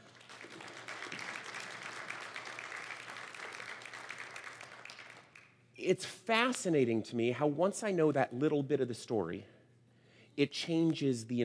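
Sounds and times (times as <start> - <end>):
audience applause for a presenter leaving the stage: 0.0 - 5.6
speech: 5.8 - 9.5, 10.4 - 11.4.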